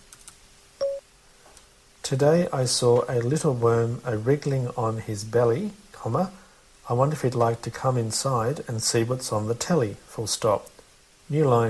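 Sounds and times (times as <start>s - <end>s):
computer dictation start beep: 0.8s - 1.0s
speech: 2.1s - 11.6s.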